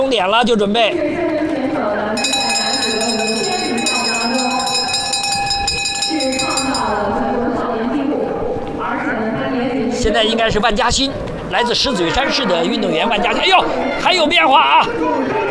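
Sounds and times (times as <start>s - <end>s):
speech: 0.0s - 3.5s, 9.1s - 15.4s
crowd noise: 0.6s - 15.4s
bell signaling the final lap: 2.2s - 7.4s.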